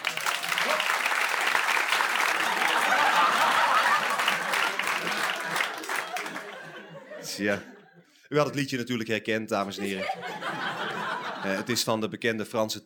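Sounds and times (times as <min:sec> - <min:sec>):
audience applause for the orchestra: 0:00.0 - 0:06.9
laughter: 0:00.0 - 0:08.1, 0:09.8 - 0:11.8
speech: 0:07.4 - 0:10.7, 0:11.4 - 0:12.8.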